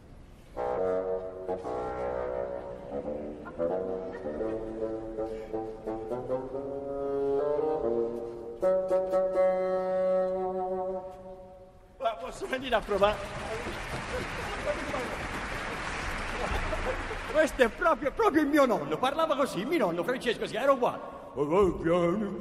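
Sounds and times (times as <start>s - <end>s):
bassoon playing: 0.5s - 11.8s
speech: 1.6s - 1.9s, 3.0s - 10.7s, 12.2s - 14.3s, 17.4s - 22.4s
laughter: 3.1s - 5.7s, 12.9s - 18.5s.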